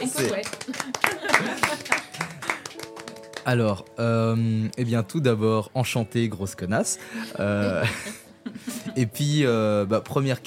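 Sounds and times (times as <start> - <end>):
speech: 0.0 - 1.2, 3.4 - 8.2, 9.0 - 10.4
audience clapping: 0.0 - 4.0
laughter: 0.6 - 2.7, 7.4 - 9.1.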